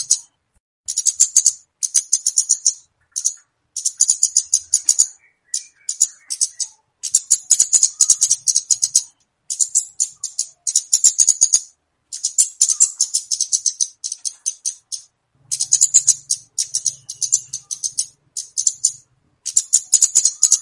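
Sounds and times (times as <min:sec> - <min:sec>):
flowerpecker calls used as a lure for catching birds: 0:00.9 - 0:20.6.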